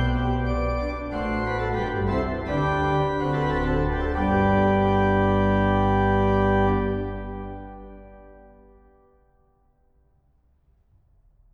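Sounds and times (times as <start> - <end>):
organ fugue in G major: 0.0 - 9.1.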